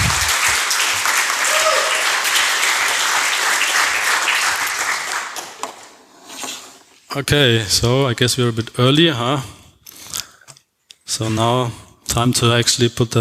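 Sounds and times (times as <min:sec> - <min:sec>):
crowd applause: 0:00.0 - 0:05.8
speech: 0:07.1 - 0:09.6, 0:11.1 - 0:13.2.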